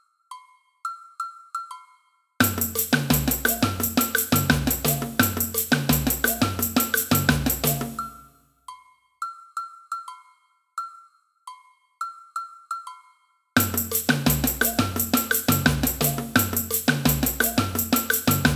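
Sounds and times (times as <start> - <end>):
agogo bells in a samba band: 2.4 - 8.2, 13.6 - 18.5
samba band playing: 2.4 - 8.2, 13.6 - 18.5.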